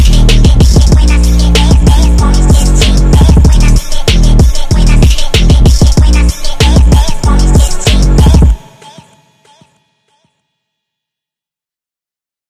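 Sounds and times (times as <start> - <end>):
hard phonk music: 0.0 - 9.8.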